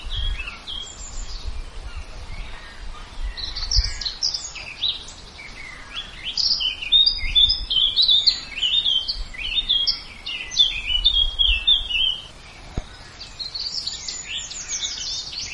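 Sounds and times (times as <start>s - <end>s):
bird harsh raspy caw-like calls: 1.9s - 15.5s.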